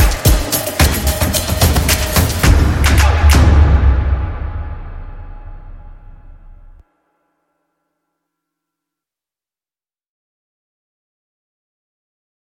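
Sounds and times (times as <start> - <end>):
music: 0.0 - 9.1.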